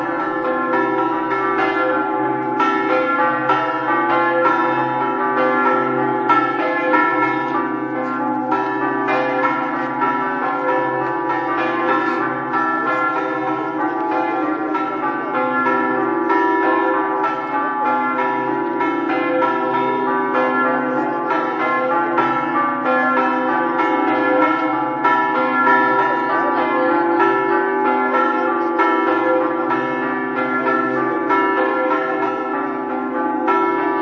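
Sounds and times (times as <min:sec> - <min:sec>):
bells ringing: 0:00.0 - 0:34.0.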